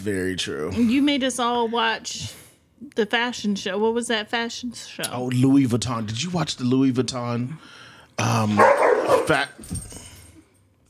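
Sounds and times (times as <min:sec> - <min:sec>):
speech: 0:00.0 - 0:10.0
dogs barking: 0:08.5 - 0:09.5.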